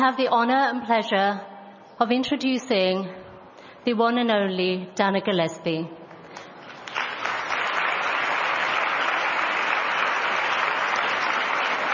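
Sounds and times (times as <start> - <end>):
speech: 0.0 - 3.2, 3.8 - 6.0
audience applause: 6.7 - 11.9.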